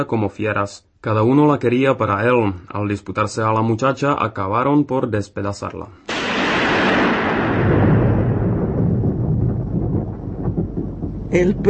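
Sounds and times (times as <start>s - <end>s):
speech: 0.0s - 6.1s, 11.3s - 11.6s
thunder rumbling: 6.1s - 11.6s.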